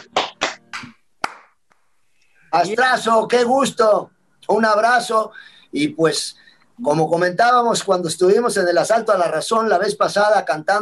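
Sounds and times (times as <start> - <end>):
audience applause: 0.0 - 1.4
speech: 2.5 - 10.8.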